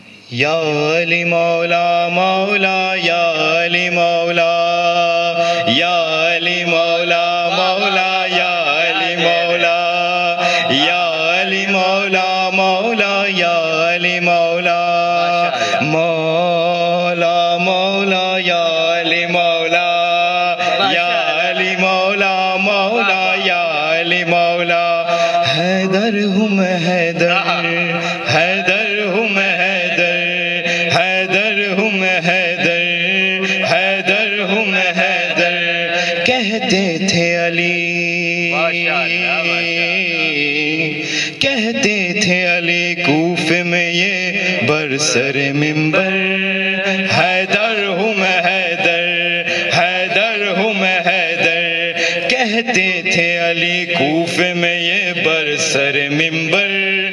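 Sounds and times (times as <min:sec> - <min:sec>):
Sufi manqabat devotional singing: 0:00.0 - 0:57.1.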